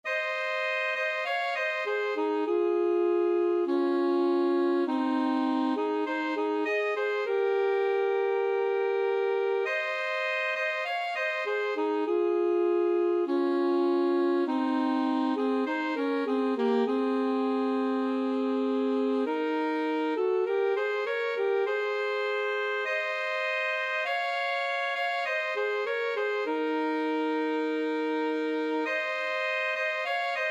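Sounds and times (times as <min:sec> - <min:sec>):
alto saxophone duet: 0:00.0 - 0:30.4.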